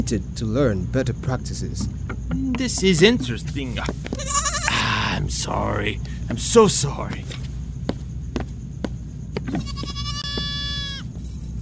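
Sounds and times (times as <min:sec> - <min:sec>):
speech: 0:00.0 - 0:04.5, 0:05.1 - 0:07.4
low rumble of noise: 0:00.0 - 0:11.6
goat bleating: 0:04.1 - 0:05.2, 0:09.4 - 0:11.0.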